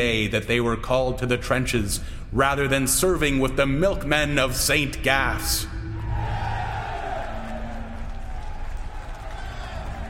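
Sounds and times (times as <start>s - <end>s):
speech: 0.0s - 5.8s
crowd of boys cheering: 6.0s - 10.0s.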